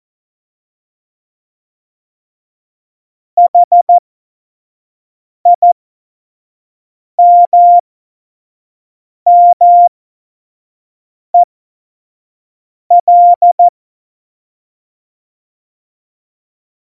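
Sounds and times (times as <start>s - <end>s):
CW Morse code beeps: 3.4s - 4.0s, 5.5s - 5.8s, 7.2s - 7.8s, 9.3s - 9.9s, 12.9s - 13.7s.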